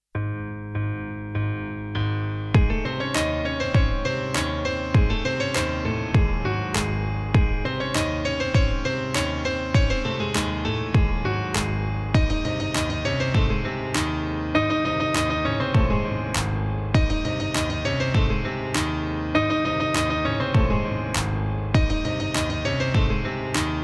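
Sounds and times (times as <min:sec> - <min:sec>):
piano cover: 0:00.2 - 0:23.8.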